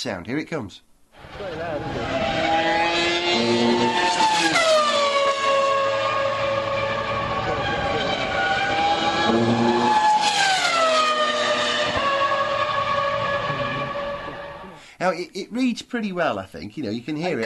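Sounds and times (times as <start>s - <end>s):
speech: 0.0s - 2.0s, 3.4s - 4.4s, 9.3s - 10.0s, 15.0s - 17.4s
tyres vibrating over track rumble strips: 1.2s - 14.7s
racing car engine whining: 1.2s - 14.8s.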